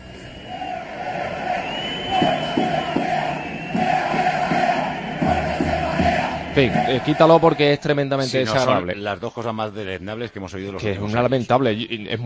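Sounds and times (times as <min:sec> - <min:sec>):
football crowd chanting: 0:00.0 - 0:08.7
speech: 0:06.6 - 0:12.2.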